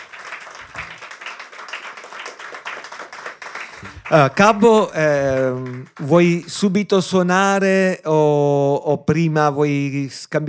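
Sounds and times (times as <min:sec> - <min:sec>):
applause: 0:00.0 - 0:06.8
speech: 0:03.8 - 0:10.4.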